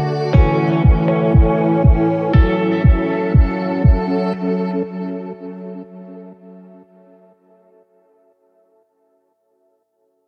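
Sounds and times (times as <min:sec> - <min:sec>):
inspiring ambient cinematic corporate music: 0:00.0 - 0:07.4.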